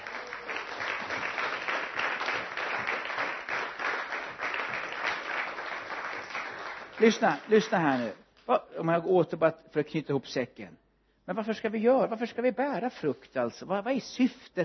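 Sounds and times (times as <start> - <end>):
audience applause: 0.0 - 8.1
speech: 7.0 - 14.6.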